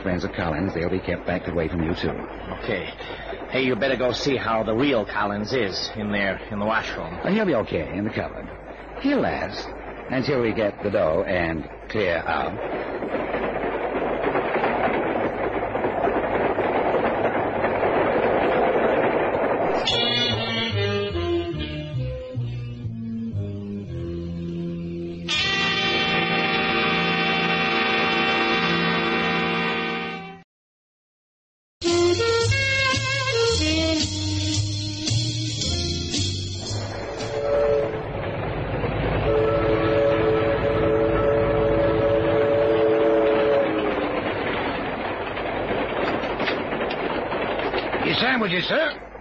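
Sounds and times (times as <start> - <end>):
speech: 0.0 - 12.9
moving train: 0.0 - 30.4, 31.8 - 49.1
train horn: 25.2 - 30.4, 31.8 - 34.5, 37.0 - 38.2, 39.2 - 44.4.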